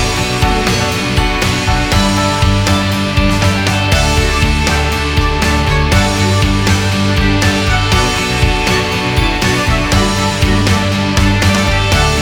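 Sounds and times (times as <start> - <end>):
corporate background music: 0.0 - 12.2.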